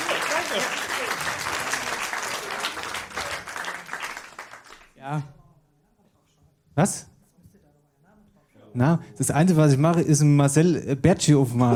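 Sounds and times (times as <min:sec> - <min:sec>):
audience applause: 0:00.0 - 0:05.0
speech: 0:05.1 - 0:05.3, 0:06.8 - 0:07.1, 0:08.8 - 0:11.7.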